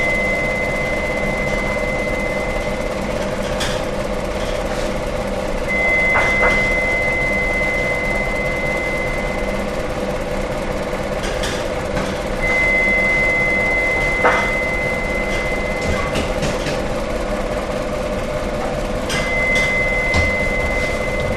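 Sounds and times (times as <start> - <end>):
beeping in a bakery: 0.0 - 3.1, 5.3 - 9.8, 12.3 - 16.2, 18.9 - 21.3
bakers working in background: 0.0 - 21.3
bakery stirring machine running in Germany: 0.0 - 21.3.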